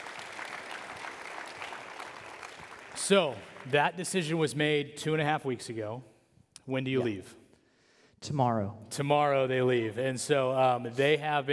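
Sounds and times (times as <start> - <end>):
smattering of clapping from a small group: 0.0 - 3.7
speech: 3.0 - 6.1, 6.7 - 7.4, 8.2 - 11.5.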